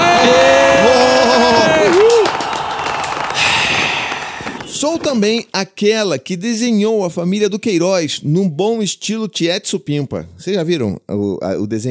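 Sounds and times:
applause or fireworks sound effect: 0.0 - 5.2
speech: 5.0 - 11.8.

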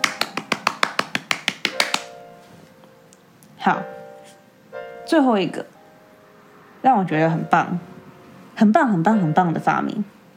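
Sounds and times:
hand clapping: 0.0 - 2.2
speech: 3.6 - 4.0, 5.1 - 5.7, 6.8 - 7.9, 8.6 - 10.2.

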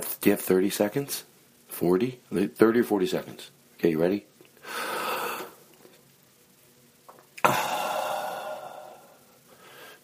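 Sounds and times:
speech: 0.2 - 4.9
deep breathing during a breathing exercise: 4.6 - 5.6, 7.4 - 10.0.

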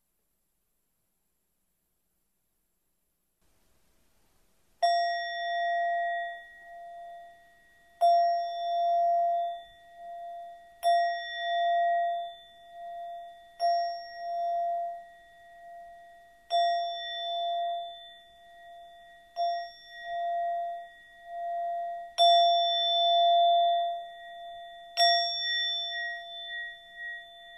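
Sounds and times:
struck meditation chime ringing: 4.8 - 27.5.

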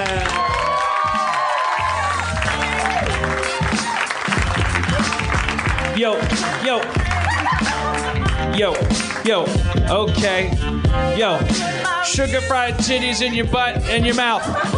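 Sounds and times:
audience applauding and cheering a host's entrance at a live show: 0.0 - 9.7
speech: 6.0 - 7.0, 8.4 - 14.7
laughter: 6.6 - 8.9, 14.1 - 14.7.

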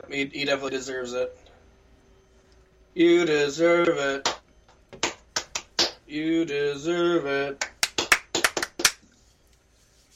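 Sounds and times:
speech: 0.1 - 1.5, 3.0 - 4.4, 6.1 - 7.7
hands clapping: 4.2 - 6.0, 7.6 - 9.0.

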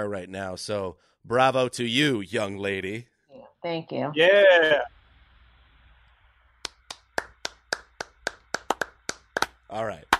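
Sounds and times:
speech: 0.0 - 4.9, 9.7 - 10.1
golf clap: 6.6 - 10.1.

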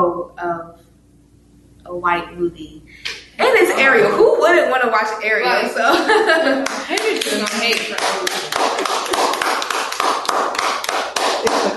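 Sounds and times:
speech: 0.2 - 0.9, 1.9 - 9.2
laughter: 3.4 - 4.3, 5.8 - 8.5, 11.4 - 11.7
people clapping and applauding: 6.4 - 11.7.

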